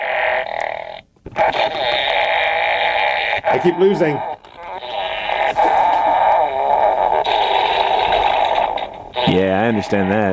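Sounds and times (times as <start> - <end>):
toy's loud raspy electronic fart noise: 0.0 - 10.3
speech: 1.5 - 2.0, 3.5 - 4.3, 9.3 - 10.3.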